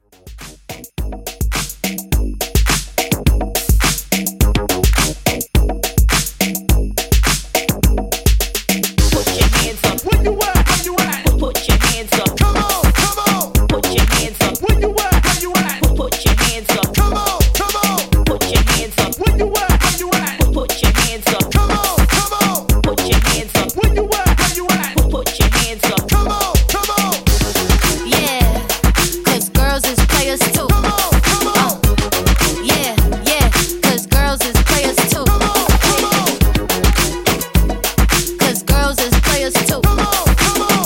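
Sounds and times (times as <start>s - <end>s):
TikTok dance music at 105 bpm: 0.0s - 40.8s.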